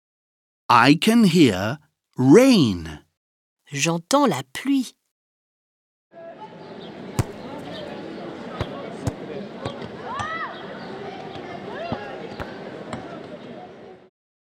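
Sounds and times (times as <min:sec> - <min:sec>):
speech: 0:00.7 - 0:03.0, 0:03.7 - 0:05.0
people playing football outdoors: 0:06.2 - 0:14.1.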